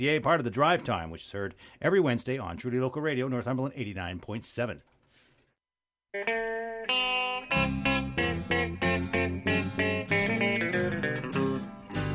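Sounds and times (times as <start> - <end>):
speech: 0.0 - 4.9, 6.1 - 7.0
hockey song playing: 6.2 - 12.1.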